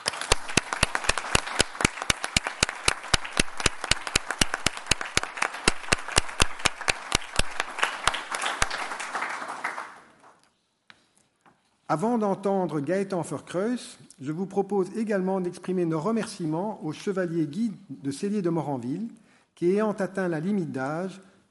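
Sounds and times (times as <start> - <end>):
audience applause: 0.0 - 10.3
speech: 11.9 - 21.4.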